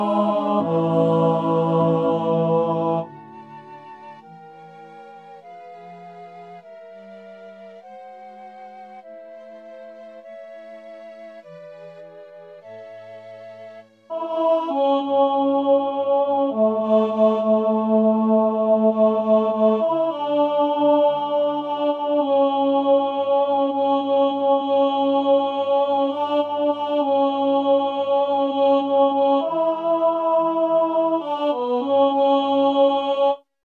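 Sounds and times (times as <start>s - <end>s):
tenor singing: 0.0s - 33.4s.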